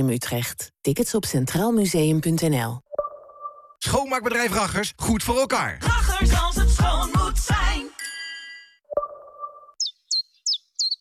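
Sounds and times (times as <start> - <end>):
speech: 0.0 - 2.8, 3.8 - 8.2
chiffchaff song: 9.7 - 10.9.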